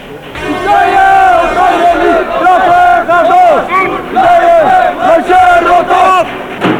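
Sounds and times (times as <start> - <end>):
protest crowd chanting slogans: 0.3 - 6.6.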